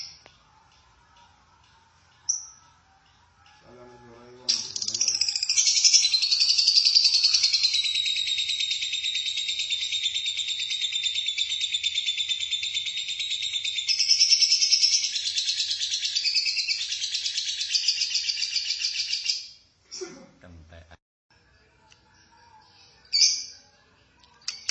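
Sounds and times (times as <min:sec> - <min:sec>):
lovebird rasping chatter: 0:04.5 - 0:19.3, 0:24.4 - 0:24.6.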